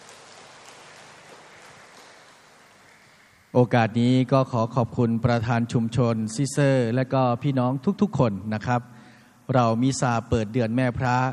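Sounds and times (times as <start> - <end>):
crowd clapping to welcome a visitor: 0.0 - 3.5
speech: 3.5 - 8.9, 9.5 - 11.3.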